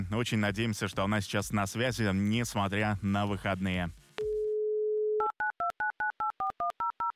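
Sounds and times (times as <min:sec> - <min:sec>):
speech: 0:00.0 - 0:04.0
telephone dial tone: 0:04.2 - 0:07.1.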